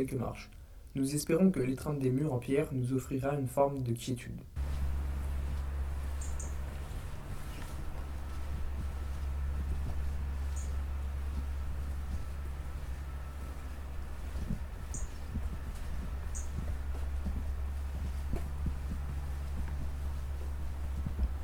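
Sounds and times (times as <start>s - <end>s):
speech: 0.0s - 4.6s
city noise: 4.6s - 21.4s
sparrows chirping: 4.6s - 21.4s.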